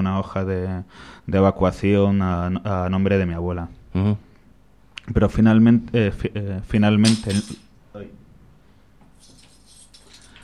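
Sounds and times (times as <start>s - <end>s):
speech: 0.2s - 4.3s, 5.0s - 8.2s
keys jangling while being searched for: 9.2s - 10.4s.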